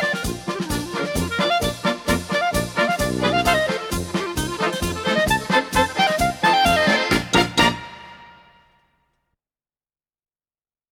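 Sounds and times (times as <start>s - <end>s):
German band playing a polka: 0.0s - 8.7s
clarinet playing a polka: 0.0s - 8.7s.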